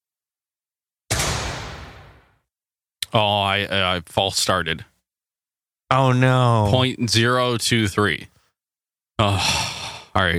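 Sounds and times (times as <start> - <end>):
starting gunshot sound effect: 1.1 - 2.4
speech: 3.1 - 4.9, 5.9 - 8.3, 9.2 - 10.3.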